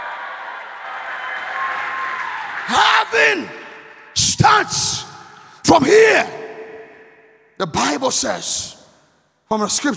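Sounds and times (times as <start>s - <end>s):
audience clapping: 0.0s - 4.2s
audience cheering: 0.0s - 4.8s
speech: 2.7s - 3.6s, 4.2s - 5.1s, 5.7s - 6.4s, 7.6s - 8.8s, 9.5s - 9.9s.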